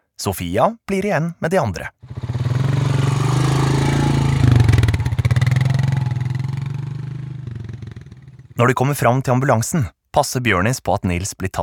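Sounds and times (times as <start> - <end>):
speech: 0.2 - 2.2, 8.6 - 11.6
four-wheeler quad bike driving: 2.0 - 8.6.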